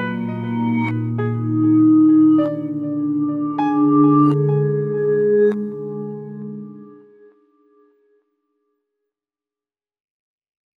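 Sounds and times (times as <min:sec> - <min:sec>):
emotional lullaby: 0:00.0 - 0:07.4.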